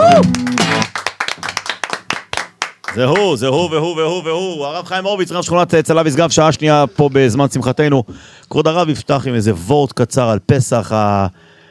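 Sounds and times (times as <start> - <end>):
hands clapping: 0.0 - 3.4
speech: 2.9 - 11.5.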